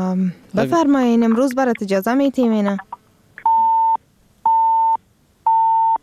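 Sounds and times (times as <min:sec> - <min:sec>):
speech: 0:00.0 - 0:03.0
busy tone of a phone call that fails to connect: 0:03.4 - 0:06.0.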